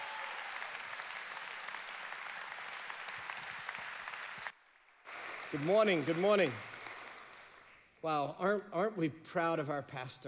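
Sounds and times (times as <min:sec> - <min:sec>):
crowd applause: 0:00.0 - 0:07.8
speech: 0:05.5 - 0:06.7, 0:08.0 - 0:10.2.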